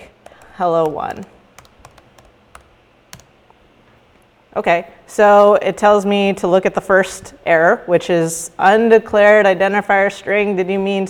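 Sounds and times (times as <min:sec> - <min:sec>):
low hiss: 0:00.0 - 0:11.0
typing a command on a computer keyboard while coding: 0:00.2 - 0:03.4
speech: 0:00.6 - 0:01.4, 0:04.6 - 0:11.0.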